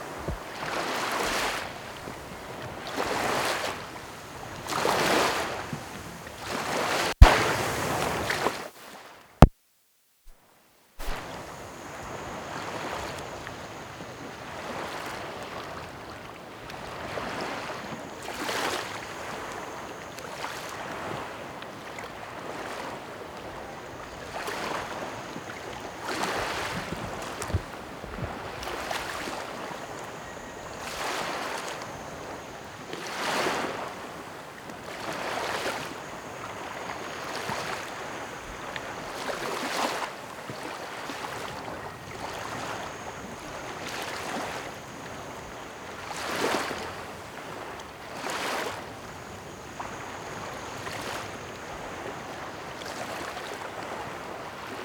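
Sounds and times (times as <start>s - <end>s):
gentle waves: 0.0s - 9.0s, 11.0s - 54.8s.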